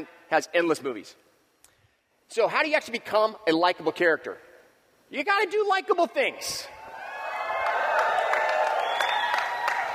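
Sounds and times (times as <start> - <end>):
speech: 0.0 - 1.3, 2.3 - 4.5, 5.1 - 6.8
voices cheering: 6.4 - 9.9
crowd applauding: 6.9 - 9.9.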